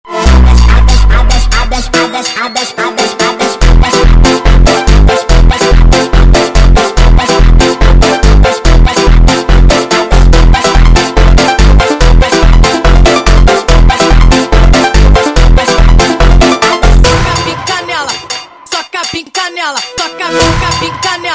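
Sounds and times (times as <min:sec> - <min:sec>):
sped up funk music: 0:00.1 - 0:21.3.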